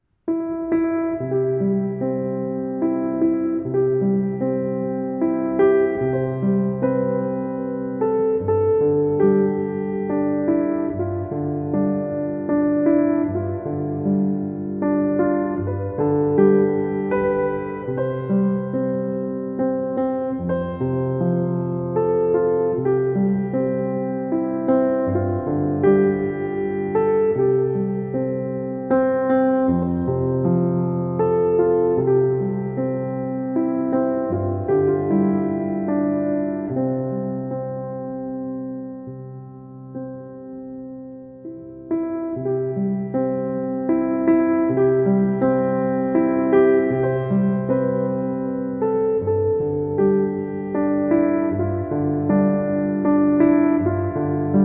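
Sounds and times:
relaxing piano lullaby: 0.0s - 54.6s.

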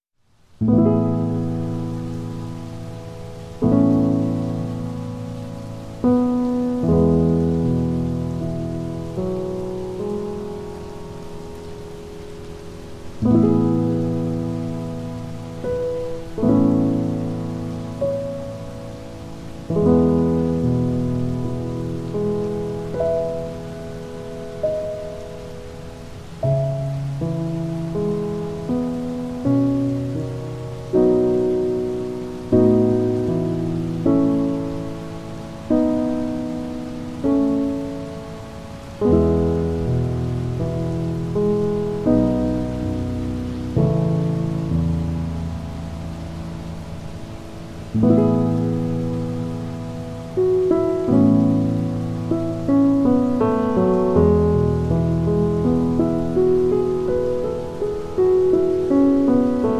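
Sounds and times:
piano: 0.0s - 59.7s
rain: 0.0s - 59.7s.

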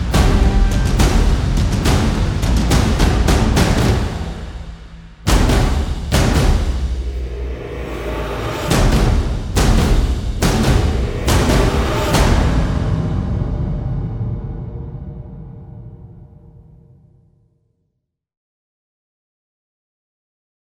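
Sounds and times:
percussion: 0.0s - 15.8s.

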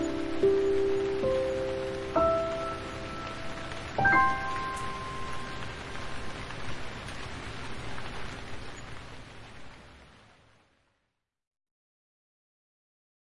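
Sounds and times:
sleeping piano song: 0.0s - 6.7s
rain: 0.0s - 11.4s.

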